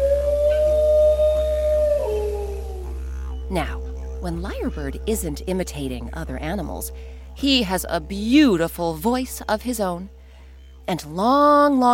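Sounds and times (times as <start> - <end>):
dingo howling: 0.0 - 6.7
low hum: 0.0 - 11.9
speech: 3.5 - 10.2, 10.9 - 11.9.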